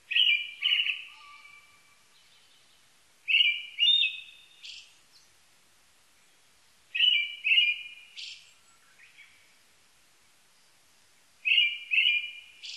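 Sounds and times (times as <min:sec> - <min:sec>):
brown-headed thrush singing: 0:03.3 - 0:04.8, 0:07.0 - 0:09.2, 0:11.4 - 0:12.7.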